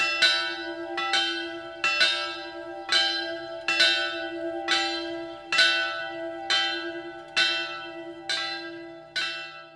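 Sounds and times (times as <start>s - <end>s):
bells: 0.0s - 9.7s.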